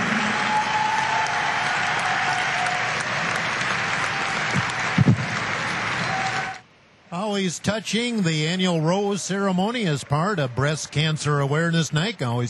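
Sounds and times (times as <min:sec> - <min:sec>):
audience applause: 0:00.0 - 0:06.7, 0:08.1 - 0:12.4
speech: 0:07.3 - 0:12.4.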